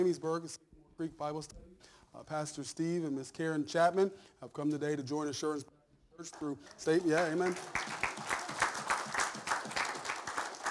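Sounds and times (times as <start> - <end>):
speech: 0.0 - 8.0
faint church congregation applause welcoming new members: 6.3 - 10.6.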